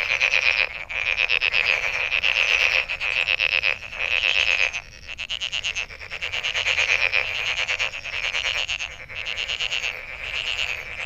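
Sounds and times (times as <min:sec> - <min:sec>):
frogs giving pulsed trills: 0:00.0 - 0:11.0.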